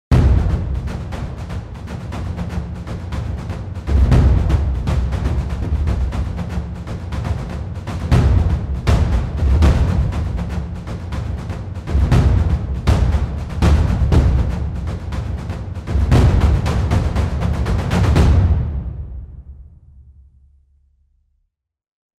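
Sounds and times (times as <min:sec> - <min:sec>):
drums playing accents with a sixteenth-note feel: 0:00.1 - 0:20.1.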